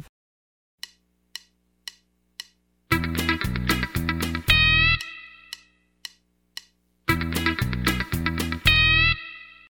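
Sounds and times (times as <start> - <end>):
country rock music: 2.9 - 5.3, 7.1 - 9.5.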